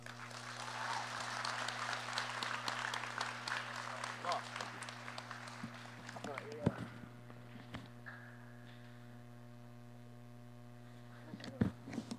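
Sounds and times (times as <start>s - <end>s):
audience applause: 0.0s - 6.9s
low steady hum: 0.0s - 12.1s.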